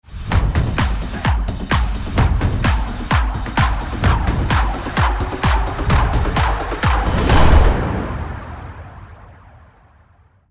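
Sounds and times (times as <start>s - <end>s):
quiz music: 0.2s - 7.8s.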